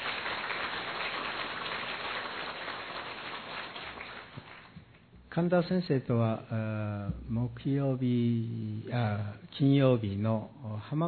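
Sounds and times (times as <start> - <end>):
audience applause of thanks: 0.0 - 4.8
speech: 5.4 - 11.0.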